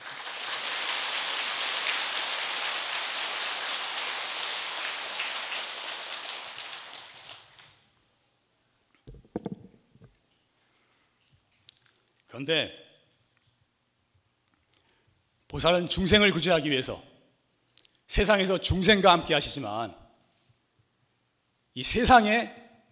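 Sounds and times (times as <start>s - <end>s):
audience applause: 0.0s - 7.7s
speech: 12.4s - 12.8s, 15.6s - 17.1s, 18.1s - 20.0s, 21.8s - 22.9s.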